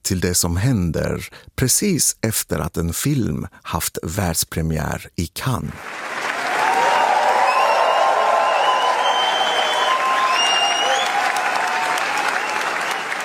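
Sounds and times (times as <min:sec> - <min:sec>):
speech: 0:00.1 - 0:06.1
standing ovation applause for Léa Seydoux at the Cannes Film Festival premiere: 0:05.8 - 0:13.2.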